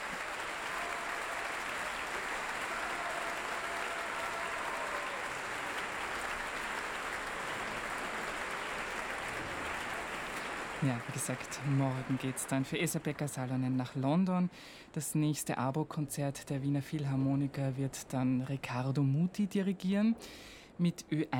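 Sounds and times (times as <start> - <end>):
large concert audience applauding conductor back on stage: 0.0 - 13.5
speech: 10.8 - 21.3.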